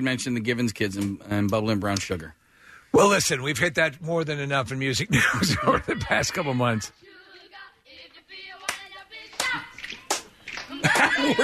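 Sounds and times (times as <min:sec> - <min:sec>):
speech: 0:00.0 - 0:07.1, 0:10.9 - 0:11.4
laughter: 0:05.1 - 0:06.8, 0:10.6 - 0:11.4
hand claps: 0:08.6 - 0:11.4.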